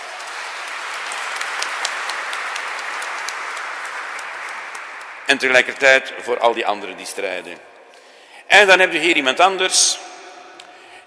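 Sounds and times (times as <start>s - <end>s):
audience applause: 0.0s - 5.9s
speech: 5.3s - 7.7s, 8.5s - 10.1s.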